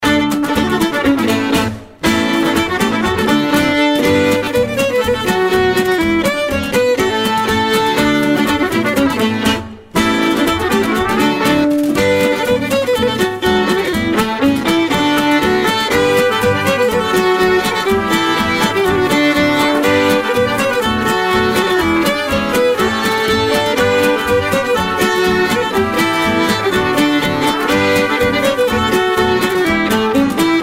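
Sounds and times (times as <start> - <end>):
polka music: 0.0 - 30.6.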